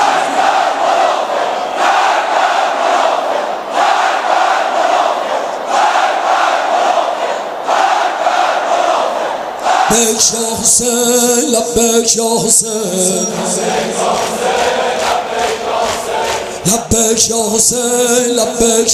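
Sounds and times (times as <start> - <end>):
crowd shouting slogans: 0.0 - 10.0, 13.2 - 16.7
speech: 9.9 - 15.6, 16.6 - 18.9.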